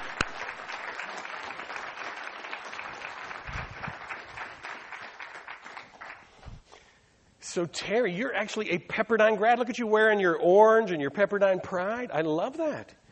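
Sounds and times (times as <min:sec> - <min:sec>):
audience applause welcoming a guest onto a stage: 0:00.0 - 0:06.4
speech: 0:07.6 - 0:13.0.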